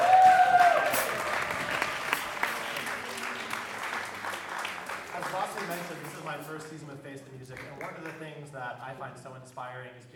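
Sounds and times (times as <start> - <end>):
audience applause: 0.0 - 6.4
speech: 8.7 - 10.1.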